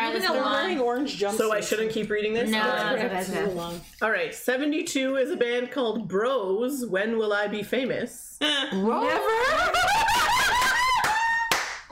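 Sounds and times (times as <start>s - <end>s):
speech: 0.2s - 10.3s
laughter: 8.8s - 11.5s
hand clapping: 11.0s - 11.9s.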